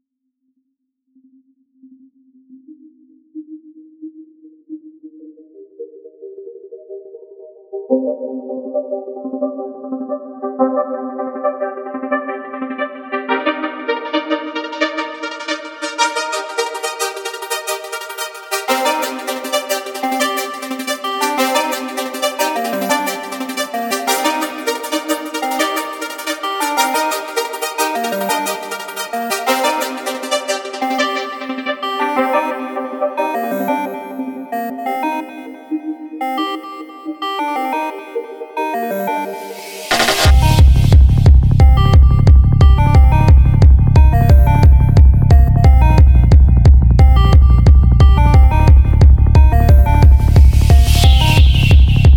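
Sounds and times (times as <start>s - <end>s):
trance music: 7.8s - 52.1s.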